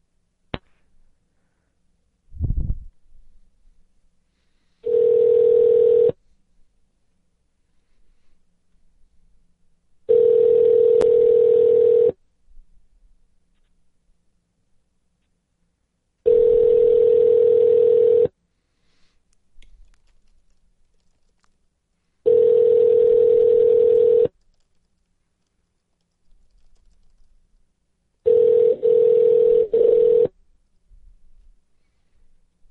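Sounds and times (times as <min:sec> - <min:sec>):
telephone line ringback tones while dialing: 0:04.8 - 0:06.2, 0:10.1 - 0:12.2, 0:16.3 - 0:18.3, 0:22.3 - 0:24.3, 0:28.3 - 0:30.3.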